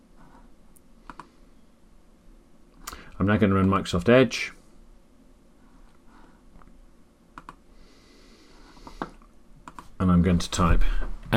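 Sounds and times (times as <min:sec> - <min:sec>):
faint hiss: 0:00.0 - 0:11.3
mouse clicks on a Close button: 0:00.8 - 0:01.4, 0:07.3 - 0:07.6, 0:08.8 - 0:09.9
speech: 0:03.2 - 0:04.6, 0:10.2 - 0:11.3.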